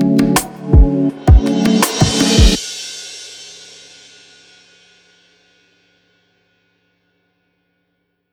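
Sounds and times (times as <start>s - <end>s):
soulful R&B jam: 0.0s - 2.6s.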